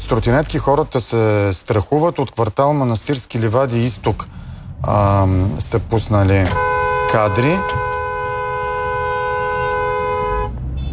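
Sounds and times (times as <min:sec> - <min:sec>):
speech: 0:00.1 - 0:07.9
car horn honking: 0:06.2 - 0:10.9.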